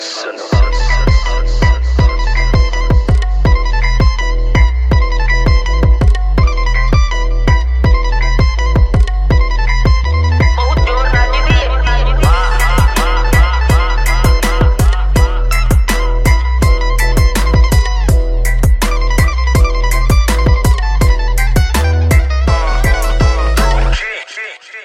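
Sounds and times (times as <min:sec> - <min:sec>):
Punjabi new music: 0:00.0 - 0:24.8.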